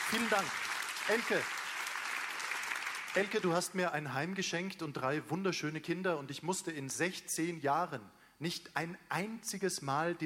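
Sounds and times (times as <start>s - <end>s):
audience applause: 0.0s - 3.5s
speech: 0.1s - 1.6s, 3.1s - 10.2s.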